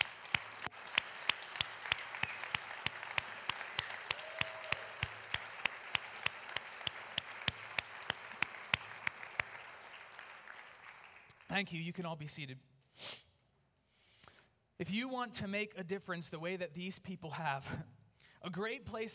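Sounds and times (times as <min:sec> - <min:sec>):
audience applause: 0:00.0 - 0:11.7
speech: 0:11.6 - 0:13.2, 0:14.8 - 0:19.1.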